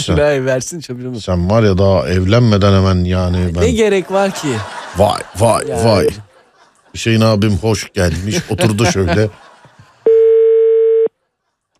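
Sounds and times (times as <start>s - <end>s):
speech: 0.0s - 6.3s, 6.9s - 9.5s
laughter: 3.4s - 10.1s
telephone ringback tone while calling: 10.1s - 11.1s.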